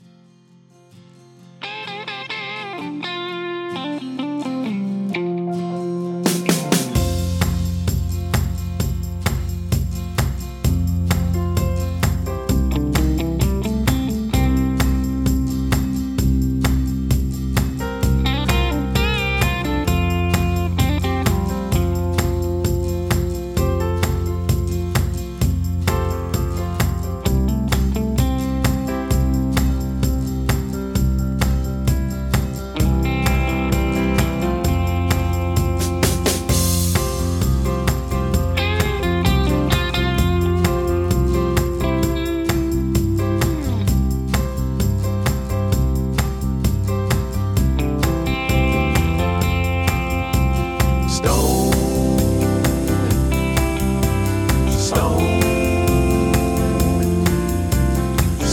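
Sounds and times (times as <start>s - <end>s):
instrumental melody: 2.2s - 58.5s
background vocals: 51.1s - 58.5s.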